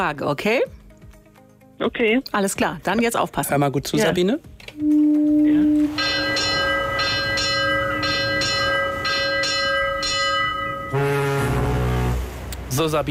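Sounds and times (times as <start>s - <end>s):
speech: 0.0s - 0.8s, 1.8s - 6.1s, 12.8s - 13.0s
ship's bell ringing as a ship leaves port: 4.8s - 12.1s
sustained tone: 4.8s - 12.4s.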